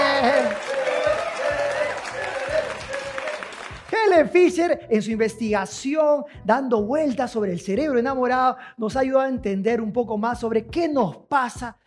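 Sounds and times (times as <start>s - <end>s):
audience applause for a guest scientist: 0.0s - 4.0s
speech: 4.2s - 11.8s.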